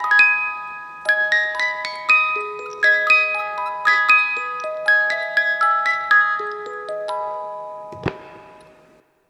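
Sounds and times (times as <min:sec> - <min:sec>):
death music: 0:00.0 - 0:09.0.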